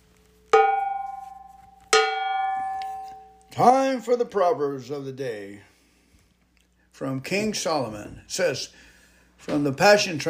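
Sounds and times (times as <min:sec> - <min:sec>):
bell struck: 0:00.6 - 0:03.6
speech: 0:03.6 - 0:05.7, 0:07.0 - 0:10.2.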